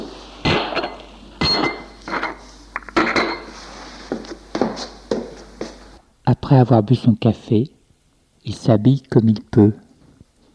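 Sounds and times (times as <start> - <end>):
dishes and cutlery clinking as someone prepares coffee: 0.5 - 3.6
speech: 6.5 - 7.8, 8.4 - 9.8.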